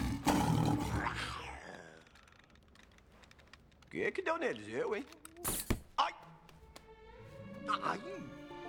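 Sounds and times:
zoo lion roaring: 0.0s - 1.6s
speech: 3.9s - 5.5s, 7.7s - 8.4s.

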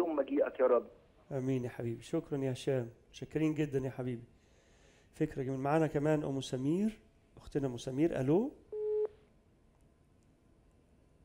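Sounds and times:
speech: 0.2s - 4.4s, 5.1s - 8.6s
telephone busy tone as a phone-in caller's line disconnects: 8.8s - 9.1s.

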